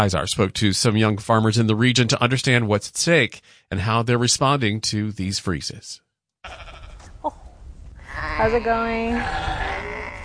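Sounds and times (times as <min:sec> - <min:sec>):
speech: 0:00.0 - 0:07.4, 0:08.2 - 0:09.7
Icelandic and Shetland sheep bleating: 0:06.4 - 0:07.1, 0:08.0 - 0:10.2.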